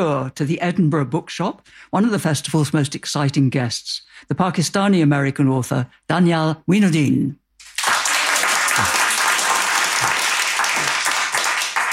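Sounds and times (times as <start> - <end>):
speech: 0.0 - 7.4
audience applauding in the Edinburgh Bookshop at a festival author event: 7.6 - 11.9.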